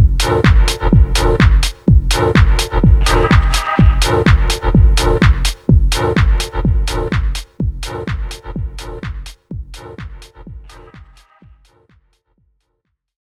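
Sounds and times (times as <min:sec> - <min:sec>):
synth: 0:00.0 - 0:09.1.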